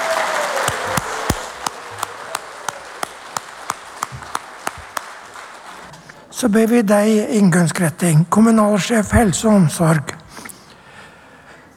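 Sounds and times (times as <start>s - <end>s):
audience applause: 0.0s - 6.0s
speech: 6.4s - 10.2s.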